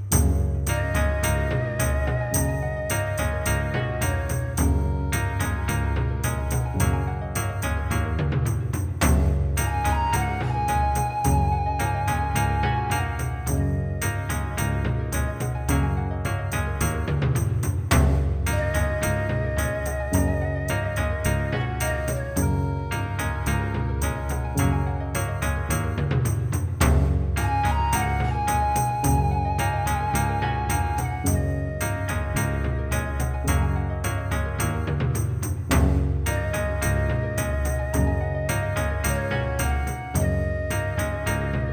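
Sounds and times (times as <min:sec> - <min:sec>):
black key piano improvisation: 0:00.1 - 0:41.7.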